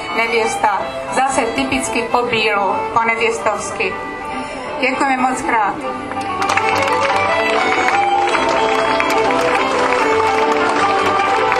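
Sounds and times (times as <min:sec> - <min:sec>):
speech: 0:00.2 - 0:04.2, 0:04.8 - 0:08.0
audience applause: 0:06.2 - 0:11.5.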